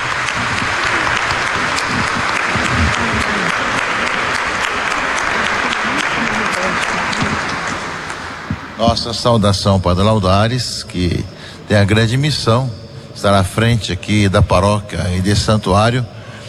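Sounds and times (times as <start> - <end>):
audience applause: 0.0 - 12.2
laughter: 0.0 - 16.4
speech: 8.8 - 16.2.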